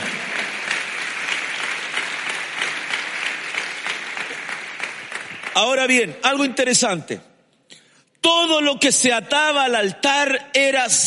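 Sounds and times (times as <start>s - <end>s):
audience clapping: 0.0s - 6.2s
speech: 5.6s - 7.3s, 8.2s - 11.0s.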